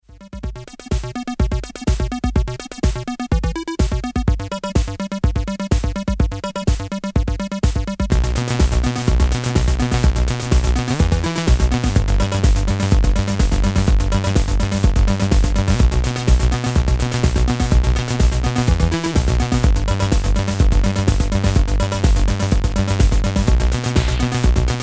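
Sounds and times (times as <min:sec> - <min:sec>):
instrumental music: 0:00.1 - 0:24.8.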